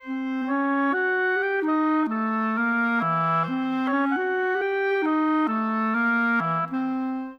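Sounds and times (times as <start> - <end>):
orchestral clarinet: 0.0 - 7.3
orchestral oboe: 0.0 - 7.3.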